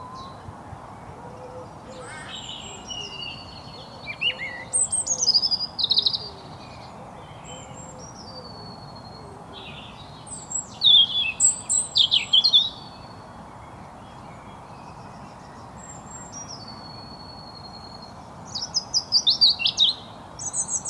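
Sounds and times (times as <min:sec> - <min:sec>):
European robin singing: 0:01.8 - 0:13.2, 0:15.8 - 0:20.8.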